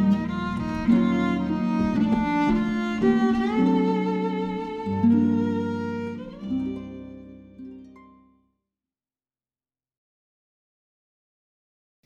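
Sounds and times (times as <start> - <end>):
violin: 0.0 - 8.2
harp: 0.0 - 8.4.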